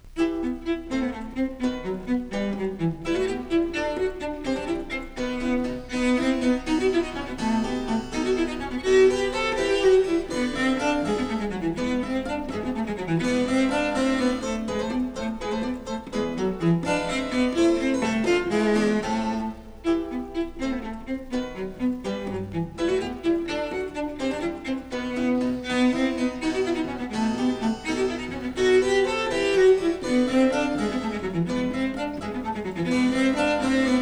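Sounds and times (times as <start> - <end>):
cello sonata: 0.0 - 34.0.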